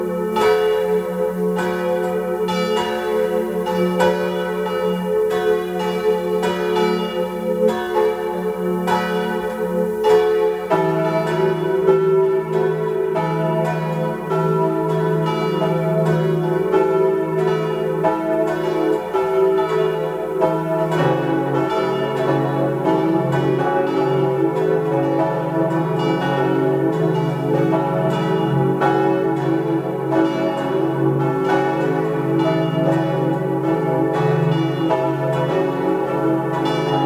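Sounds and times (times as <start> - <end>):
bells of the parish church of St. Nicholas in Grins, Tyrol, pealing: 0.0 - 37.0.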